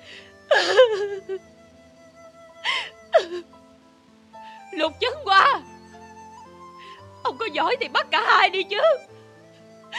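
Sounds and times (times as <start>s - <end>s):
woman sobbing in a cracking, wavering voice: 0.0s - 1.6s, 2.5s - 3.6s
speech: 1.0s - 1.6s, 4.8s - 5.4s, 7.5s - 9.1s.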